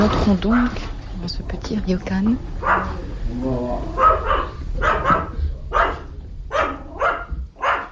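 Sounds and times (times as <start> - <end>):
speech: 0.1 - 4.5
dog barking: 2.6 - 3.1, 3.9 - 7.9.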